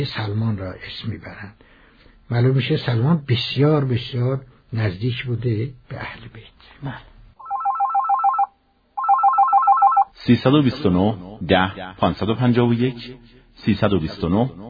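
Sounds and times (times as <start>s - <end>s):
speech: 0.0s - 7.1s, 10.2s - 14.6s
caller from Shiraz speaking over the phone line: 7.4s - 10.1s
telephone ringing for a listener call-in to a history radio program: 7.4s - 10.1s.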